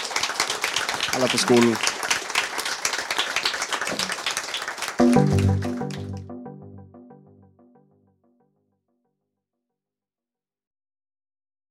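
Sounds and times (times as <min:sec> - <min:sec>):
audience applause: 0:00.0 - 0:06.3
speech: 0:01.2 - 0:02.0, 0:05.0 - 0:05.7.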